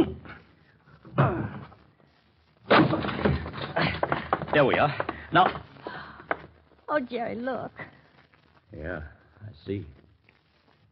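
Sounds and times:
locked door being broken in: 2.7s - 5.7s
speech: 4.6s - 5.7s, 6.9s - 7.9s, 8.7s - 10.0s.

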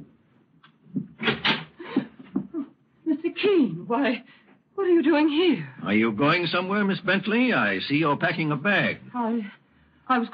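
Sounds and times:
wooden door pulled open creaking: 1.0s - 1.8s
speech: 3.4s - 10.3s.

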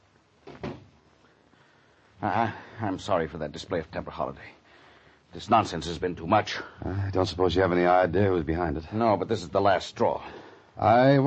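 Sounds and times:
door closing: 0.4s - 1.0s
speech: 2.2s - 4.6s, 5.3s - 11.2s.

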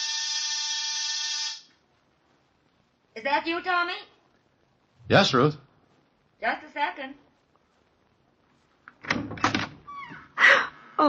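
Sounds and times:
apartment door buzzer: 0.0s - 1.7s
hiss: 0.0s - 11.0s
speech: 3.2s - 4.1s, 5.1s - 5.6s, 6.4s - 7.2s.

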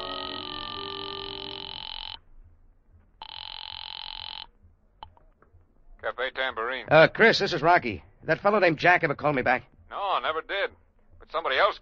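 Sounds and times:
telephone ringing on the line: 0.0s - 2.2s, 3.2s - 4.5s
speech: 6.2s - 10.4s, 11.3s - 11.8s.

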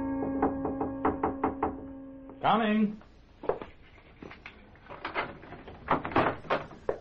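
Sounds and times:
door being pulled open: 0.1s - 2.4s, 4.3s - 6.9s
speech: 2.4s - 3.1s.

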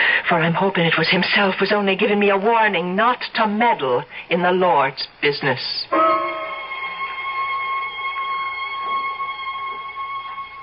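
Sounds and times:
speech: 0.3s - 6.0s
far-off bell tinkling: 5.9s - 8.7s.

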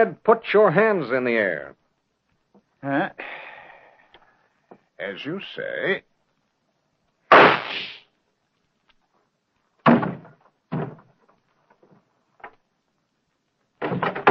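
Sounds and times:
speech: 0.0s - 1.8s, 2.8s - 3.5s, 5.0s - 6.1s
gunshot: 7.3s - 8.0s
quiet thumps and knocks: 9.8s - 12.6s.

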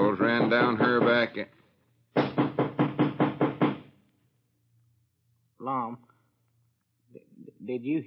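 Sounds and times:
loud knocking on a door: 0.0s - 1.4s, 2.2s - 4.0s
speech: 0.4s - 2.2s, 5.6s - 6.1s, 7.6s - 8.0s.

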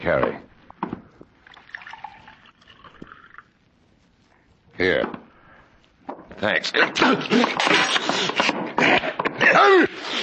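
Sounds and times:
speech: 0.0s - 0.5s, 6.4s - 10.2s
water poured from a carafe into a glass: 1.4s - 3.5s.

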